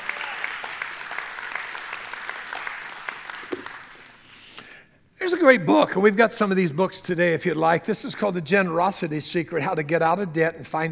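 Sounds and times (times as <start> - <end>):
audience hand clapping: 0.0 - 4.2
speech: 5.3 - 10.9.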